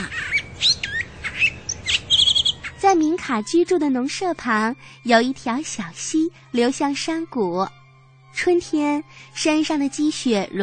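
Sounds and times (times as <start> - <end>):
birds singing: 0.0 - 2.9
speech: 2.9 - 7.8, 8.4 - 10.6.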